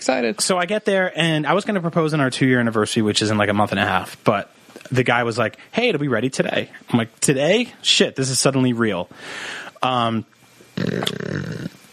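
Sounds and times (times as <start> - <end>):
speech: 0.0 - 11.8
mouth fart: 10.8 - 11.8
voiced vocal sound: 10.8 - 11.9.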